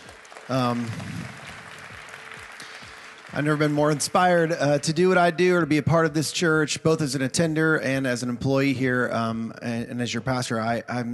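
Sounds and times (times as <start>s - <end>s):
audience applause: 0.0s - 5.2s
speech: 0.5s - 1.4s, 3.4s - 11.1s.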